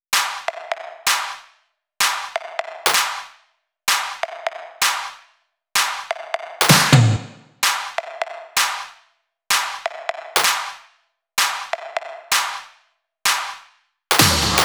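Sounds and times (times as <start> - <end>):
drum loops: 0.2 - 1.4, 2.0 - 3.3, 3.9 - 5.2, 5.8 - 8.9, 9.5 - 10.8, 11.4 - 12.6, 13.3 - 14.6.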